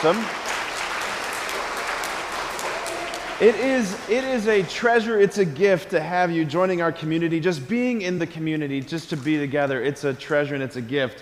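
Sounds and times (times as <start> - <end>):
speech: 0.0 - 0.4, 3.4 - 11.1
audience applause: 0.0 - 5.2.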